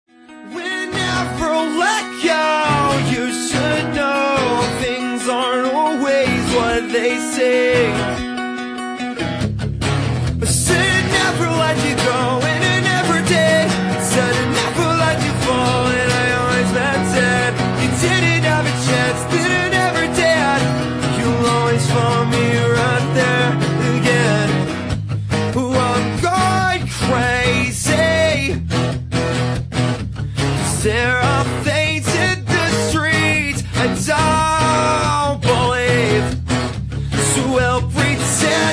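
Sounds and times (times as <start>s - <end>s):
acoustic music: 0.1s - 38.7s.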